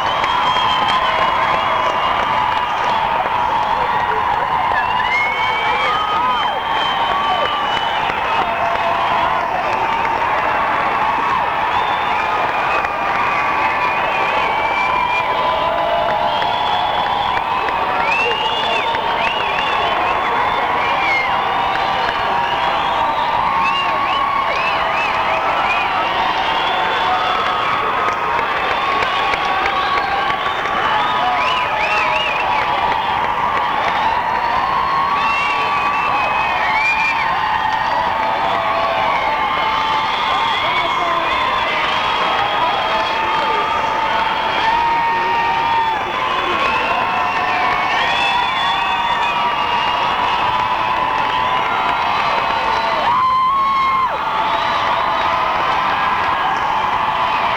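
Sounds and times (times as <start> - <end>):
applause: 0.0 - 57.5.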